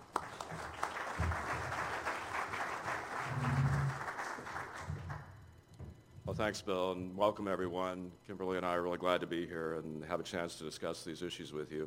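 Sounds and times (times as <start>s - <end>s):
audience applause welcoming speakers at a University of Nebraska event: 0.0s - 5.3s
speech: 6.3s - 11.8s.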